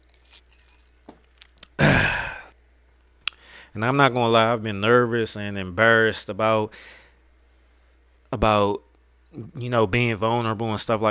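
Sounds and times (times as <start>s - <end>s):
person taking a sip of a drink: 0.0s - 2.5s
speech: 3.7s - 7.0s, 8.3s - 11.0s.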